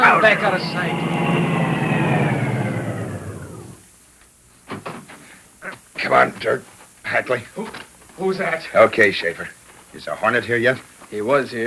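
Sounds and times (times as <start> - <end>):
car engine roaring: 0.0 - 3.8
speech: 0.2 - 1.6, 6.1 - 11.6.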